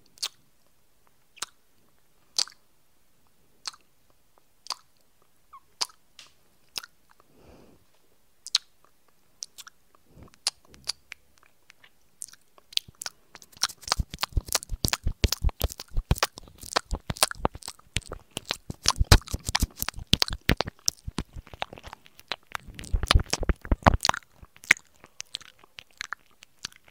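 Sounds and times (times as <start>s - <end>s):
soft ear licking: 9.4s - 26.9s.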